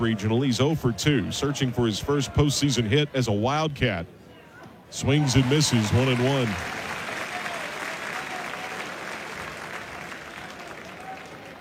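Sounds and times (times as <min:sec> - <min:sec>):
speech: 0:00.0 - 0:04.2, 0:04.9 - 0:06.8
crowd applauding and cheering at a baseball game: 0:05.1 - 0:11.5.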